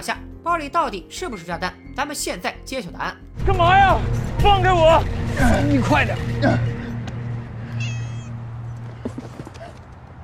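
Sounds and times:
speech: 0:00.0 - 0:06.7
low hum: 0:03.4 - 0:09.5
cat meowing inside a bag: 0:07.7 - 0:08.4.

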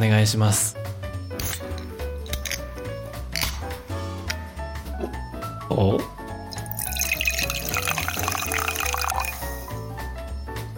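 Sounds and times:
speech: 0:00.0 - 0:00.9, 0:05.7 - 0:06.2
music with a low pulsing bass line: 0:00.0 - 0:10.7
drink poured into a glass: 0:06.5 - 0:09.7.

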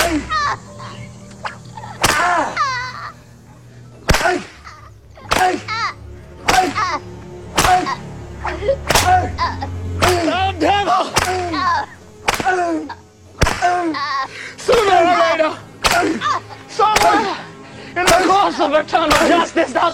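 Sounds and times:
whip lashing: 0:00.0 - 0:00.3, 0:01.4 - 0:02.6, 0:04.1 - 0:05.8, 0:06.4 - 0:08.0, 0:08.8 - 0:09.3, 0:10.0 - 0:10.4, 0:11.0 - 0:12.8, 0:13.4 - 0:14.0, 0:15.8 - 0:17.4, 0:18.0 - 0:18.4, 0:19.1 - 0:19.5
laughter: 0:00.0 - 0:03.7, 0:04.3 - 0:19.8.

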